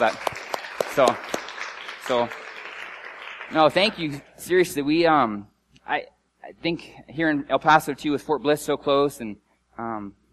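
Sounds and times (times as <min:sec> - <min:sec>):
speech: 0:00.0 - 0:00.3, 0:01.0 - 0:01.3, 0:02.1 - 0:02.4, 0:03.5 - 0:10.2
applause: 0:00.0 - 0:04.5.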